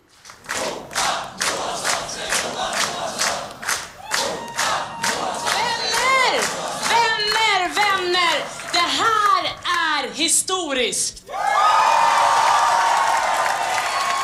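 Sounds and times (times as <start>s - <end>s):
Liberal party supporters clapping in a steady rhythm: 0.0s - 10.2s
Liberal party election-night crowd cheering and whooping: 3.9s - 7.1s, 11.3s - 14.2s.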